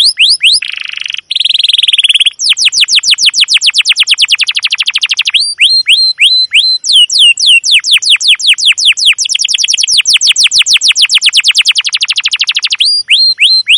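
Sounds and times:
domestic canary singing chirps, rolling trill and buzzy rattling phrases: 0.0s - 13.7s.

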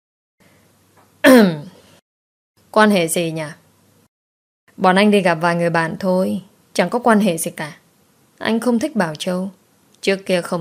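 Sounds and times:
person clearing throat: 1.2s - 1.8s
speech: 2.8s - 3.6s, 4.8s - 7.8s, 8.4s - 10.6s.

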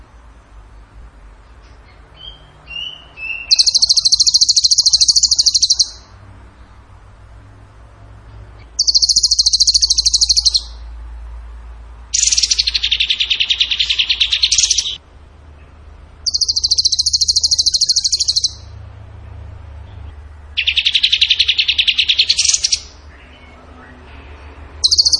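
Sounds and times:
bird trilling: 2.2s - 6.1s, 8.6s - 10.9s, 12.1s - 15.0s, 16.2s - 18.8s, 20.6s - 23.6s, 24.8s - 25.1s.

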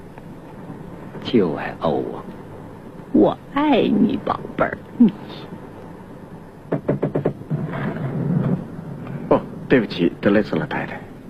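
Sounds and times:
speech: 1.2s - 2.3s, 3.2s - 5.6s, 9.7s - 11.1s
knocking on a door: 6.7s - 7.6s.

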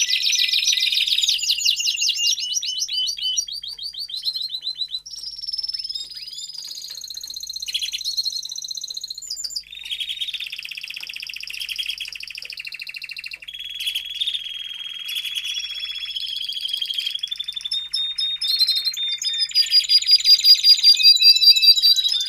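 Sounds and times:
domestic canary song: 0.0s - 22.2s.

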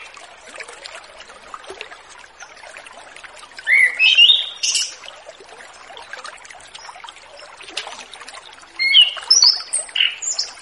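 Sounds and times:
orange-headed thrush singing repeated whistled notes: 3.7s - 4.9s, 8.8s - 10.6s.

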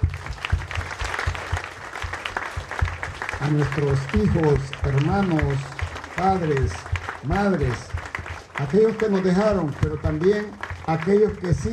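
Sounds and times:
audience applause: 0.0s - 11.7s
speech: 3.4s - 7.9s, 8.6s - 11.7s.

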